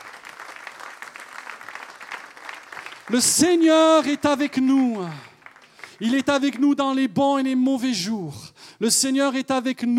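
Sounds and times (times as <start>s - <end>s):
Pentecostal congregation applause during a church service: 0.0s - 7.6s
speech: 3.1s - 5.3s, 6.0s - 9.9s.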